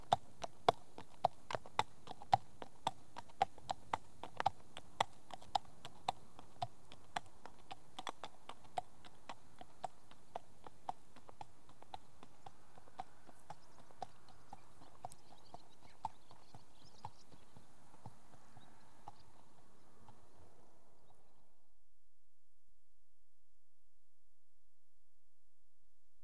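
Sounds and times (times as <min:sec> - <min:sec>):
horse hoofbeats: 0:00.0 - 0:20.3.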